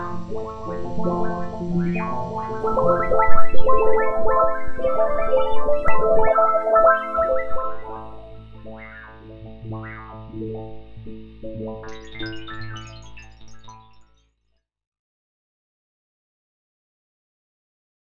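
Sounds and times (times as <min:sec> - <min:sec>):
Yamaha EX5R synthesizer water choir patch: 0:00.0 - 0:08.7
Yamaha EX5R synthesizer water sound: 0:02.6 - 0:08.4.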